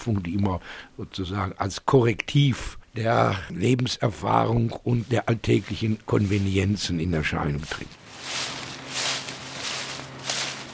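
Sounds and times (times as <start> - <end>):
speech: 0.0 - 8.6
footsteps through dry fallen leaves walking cross-country: 4.4 - 10.7.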